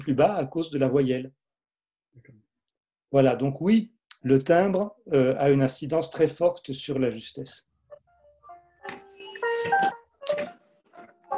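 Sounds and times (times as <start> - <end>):
speech: 0.0 - 1.4, 3.1 - 7.7
phone ringtone music: 8.0 - 11.3.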